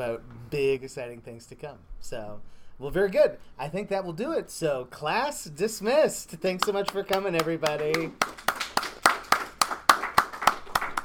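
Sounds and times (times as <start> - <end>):
speech: 0.0 - 8.5
audience clapping: 6.6 - 11.0.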